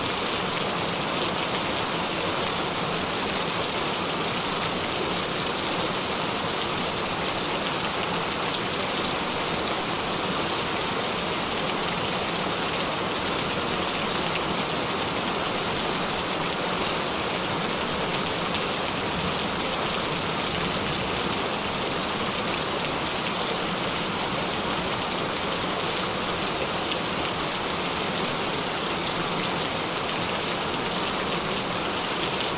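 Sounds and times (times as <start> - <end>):
gentle rain: 0.0 - 32.5.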